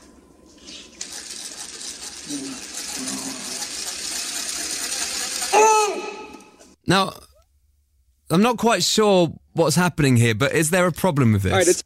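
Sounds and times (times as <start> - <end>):
power drill spinning a corn cob: 1.0 - 6.8
speech: 6.9 - 7.2, 8.3 - 11.8.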